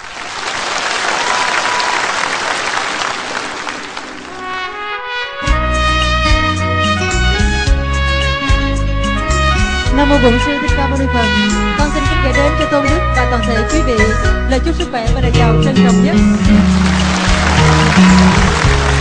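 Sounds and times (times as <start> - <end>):
audience applause at a Vietnamese Buddhist ceremony: 0.0 - 4.7, 16.3 - 18.9
song with steady melodic music: 4.6 - 18.9
speech: 10.2 - 11.6, 12.2 - 17.0.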